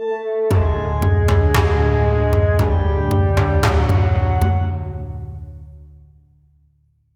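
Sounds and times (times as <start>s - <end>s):
musical stinger: 0.5s - 6.1s.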